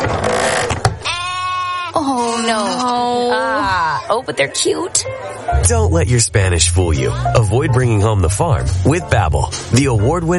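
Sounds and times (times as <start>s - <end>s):
sheep bleating at a market: 1.0s - 2.8s
speech: 2.5s - 10.3s.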